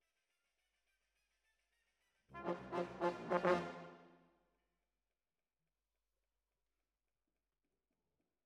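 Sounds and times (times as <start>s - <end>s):
horns: 2.4s - 4.2s.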